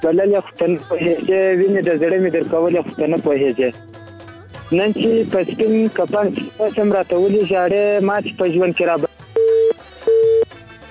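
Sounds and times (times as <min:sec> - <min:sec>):
speech: 0:00.0 - 0:04.0, 0:04.7 - 0:09.1
telephone busy tone after a dropped call: 0:09.3 - 0:10.5.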